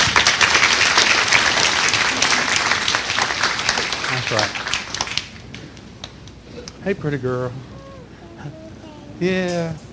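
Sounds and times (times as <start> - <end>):
audience clapping hands: 0.0 - 6.4
speech: 4.3 - 4.7, 6.8 - 7.8, 8.4 - 8.6, 9.2 - 9.9.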